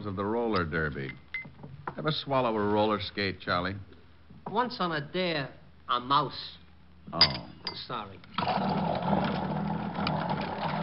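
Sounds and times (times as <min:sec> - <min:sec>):
speech: 0:00.0 - 0:01.3, 0:02.0 - 0:09.1
electric drink mixer running in a bar: 0:08.4 - 0:10.8.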